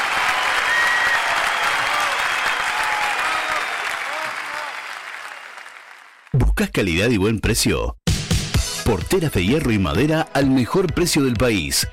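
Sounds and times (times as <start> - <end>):
crowd applause: 0.0 - 6.4
speech: 6.6 - 8.0, 8.9 - 11.9.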